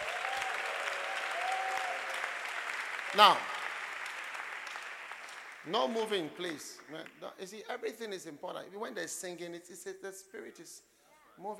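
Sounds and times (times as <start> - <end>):
audience clapping: 0.0 - 7.4
speech: 3.1 - 3.5, 5.6 - 11.5.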